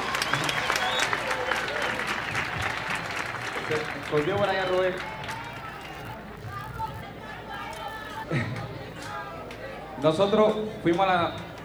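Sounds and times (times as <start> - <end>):
applause: 0.0 - 7.1
speech: 3.7 - 5.2, 10.0 - 11.4.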